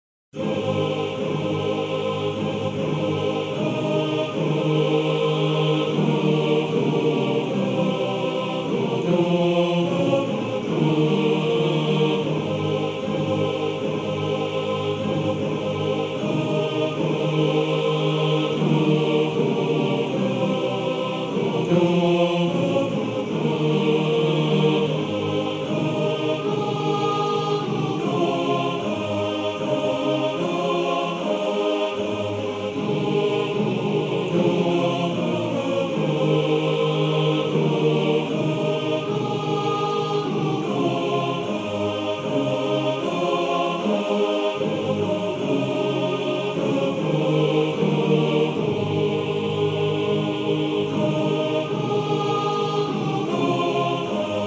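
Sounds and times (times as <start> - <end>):
choir singing: 0.4 - 54.4.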